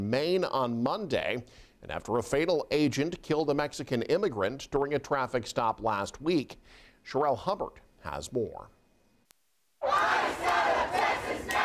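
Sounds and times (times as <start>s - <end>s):
speech: 0.1s - 8.8s
large protest crowd shouting and roaring: 9.8s - 11.6s.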